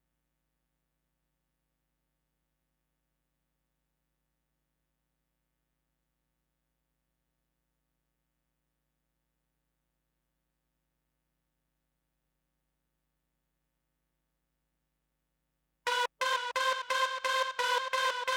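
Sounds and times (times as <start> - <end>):
synth: 15.9 - 18.3.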